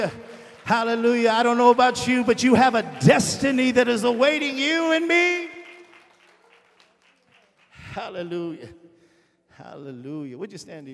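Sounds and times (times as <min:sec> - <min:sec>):
speech: 0:00.0 - 0:05.5, 0:08.0 - 0:08.8, 0:09.6 - 0:10.9
audience clapping hands: 0:00.0 - 0:08.3.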